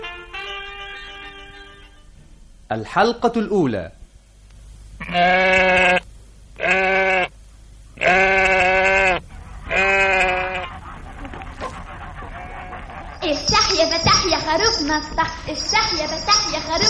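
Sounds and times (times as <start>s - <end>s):
speech: 2.8s - 4.0s, 5.1s - 6.0s, 13.8s - 16.8s
sheep bleating: 5.0s - 7.3s, 8.0s - 10.8s, 12.2s - 13.2s
laughter: 9.4s - 13.4s
busier higher-pitched tonal passage: 12.5s - 16.8s.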